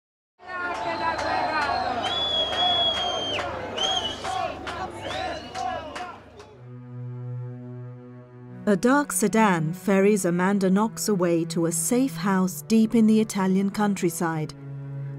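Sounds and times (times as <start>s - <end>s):
large crowd yelling outside a courthouse: 0.4s - 6.6s
speech: 8.7s - 14.6s.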